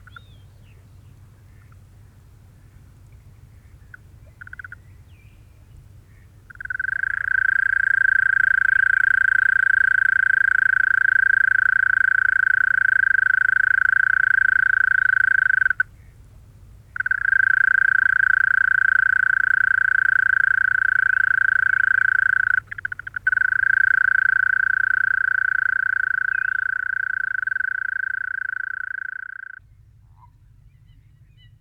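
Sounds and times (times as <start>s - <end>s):
mole cricket in the evening: 3.9s - 4.8s, 6.5s - 16.0s, 16.9s - 29.6s.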